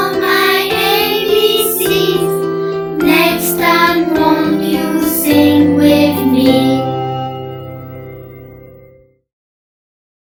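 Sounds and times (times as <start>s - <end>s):
children's song in English: 0.0s - 7.8s.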